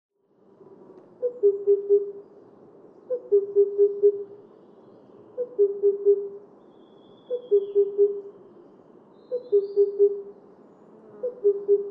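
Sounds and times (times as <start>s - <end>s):
Himalayan cuckoo hooting call: 1.2s - 2.2s, 3.1s - 4.4s, 5.4s - 8.4s, 9.2s - 10.3s, 11.2s - 11.9s.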